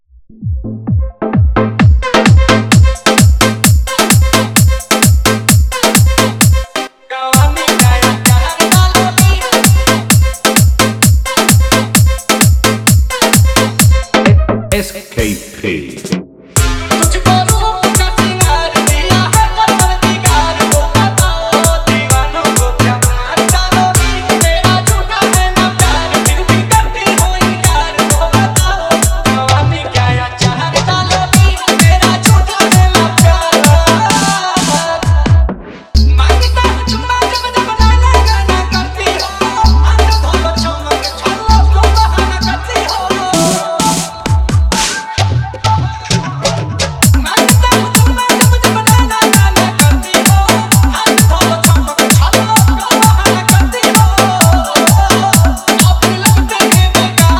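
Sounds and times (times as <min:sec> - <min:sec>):
Bhojpuri dance remix song: 0:00.4 - 0:57.3.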